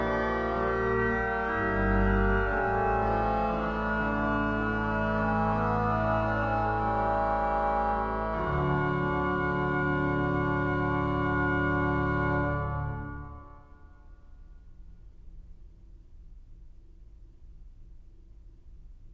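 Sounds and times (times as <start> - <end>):
organ piece: 0.0 - 13.8.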